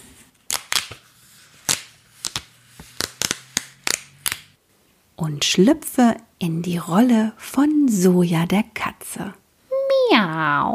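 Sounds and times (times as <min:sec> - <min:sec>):
paper sheets being separated: 0:00.0 - 0:04.5
speech: 0:05.2 - 0:09.4, 0:10.2 - 0:10.7.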